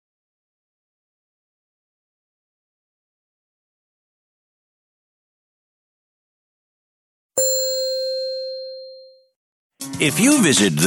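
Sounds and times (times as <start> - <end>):
old lever-operated elevator bell ding: 7.4 - 9.3
speech: 10.0 - 10.8.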